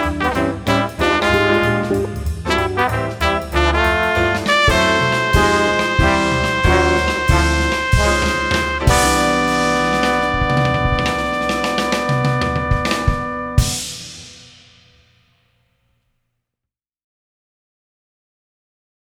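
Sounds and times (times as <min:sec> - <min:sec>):
trombone: 0:00.0 - 0:14.6.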